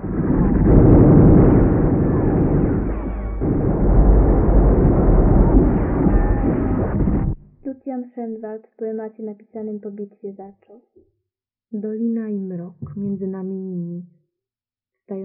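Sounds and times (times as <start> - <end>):
light artillery cannonade: 0.0 - 7.4
speech: 8.0 - 11.1, 11.7 - 14.2, 15.1 - 15.2.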